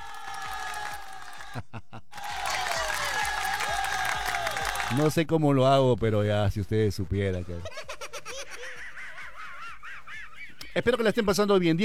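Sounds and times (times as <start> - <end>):
crowd applause: 0.0 - 5.1
laughter: 1.3 - 3.4, 7.4 - 11.4
speech: 1.5 - 2.2, 4.9 - 7.8, 10.8 - 11.8.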